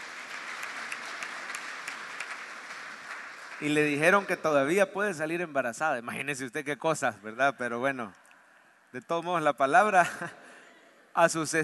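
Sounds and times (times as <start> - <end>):
audience applause: 0.0 - 4.8
speech: 3.6 - 8.2, 8.9 - 10.4, 11.2 - 11.6.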